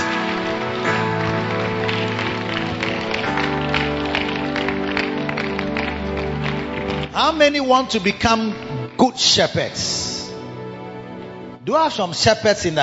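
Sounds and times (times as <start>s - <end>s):
audience clapping hands: 0.0s - 9.8s
speech: 7.2s - 10.1s, 11.7s - 12.8s.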